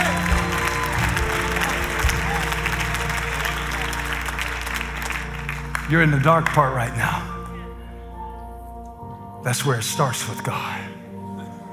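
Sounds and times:
clapping: 0:00.0 - 0:06.8
speech: 0:05.9 - 0:07.3, 0:09.4 - 0:11.0.

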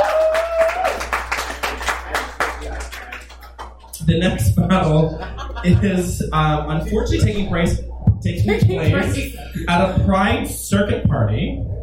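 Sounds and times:
people clapping: 0:00.0 - 0:04.0
speech: 0:04.1 - 0:11.7
laughter: 0:04.7 - 0:07.4, 0:08.3 - 0:10.0.

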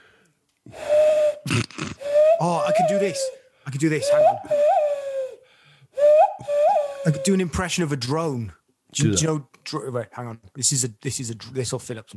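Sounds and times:
person blowing into cupped hands to make owl hoots: 0:00.7 - 0:03.4, 0:04.1 - 0:05.4, 0:06.0 - 0:07.3
speech: 0:02.4 - 0:04.8, 0:07.0 - 0:12.1.

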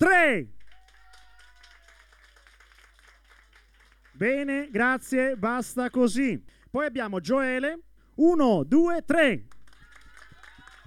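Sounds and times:
speech: 0:00.0 - 0:00.6, 0:04.2 - 0:09.6
crowd applauding and cheering for a contestant: 0:00.6 - 0:05.7, 0:09.5 - 0:10.8.

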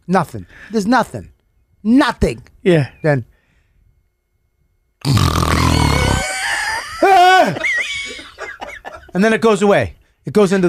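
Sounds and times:
speech: 0:00.1 - 0:03.3, 0:05.0 - 0:05.7, 0:09.2 - 0:10.6
voice imitating a wife's snoring: 0:05.0 - 0:06.3
laughter: 0:06.2 - 0:09.2.

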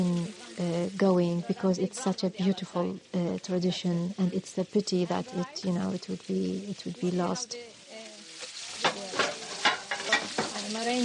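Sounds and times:
speech: 0:00.0 - 0:07.8, 0:10.8 - 0:11.0
fava bean rice boiling in a pot: 0:00.0 - 0:11.0.

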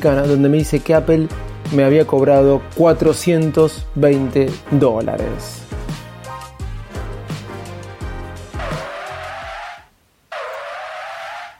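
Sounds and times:
speech: 0:00.0 - 0:05.7
car braking with tires screeching: 0:08.5 - 0:11.5.

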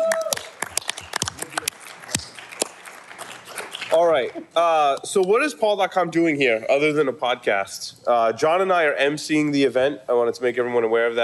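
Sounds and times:
audience applause: 0:00.0 - 0:04.0
speech: 0:04.2 - 0:11.2.

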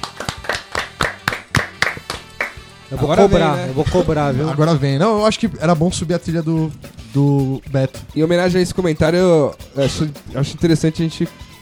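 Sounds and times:
steady brisk hand clapping: 0:00.0 - 0:02.9, 0:05.2 - 0:11.5
speech: 0:02.9 - 0:11.5.

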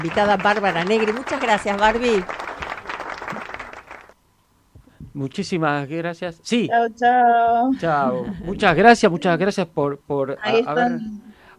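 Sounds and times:
speech: 0:00.0 - 0:02.4, 0:05.2 - 0:11.2
studio audience applause thanking a guest: 0:00.0 - 0:04.2.

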